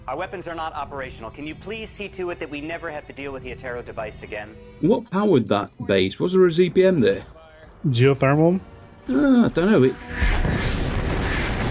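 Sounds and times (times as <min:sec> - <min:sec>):
speech: 0:00.1 - 0:10.3
CG explosion sound effect: 0:10.1 - 0:11.6.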